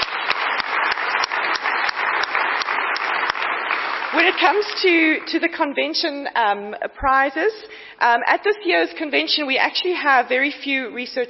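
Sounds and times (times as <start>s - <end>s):
round of applause: 0.0s - 5.6s
speech: 4.1s - 11.2s.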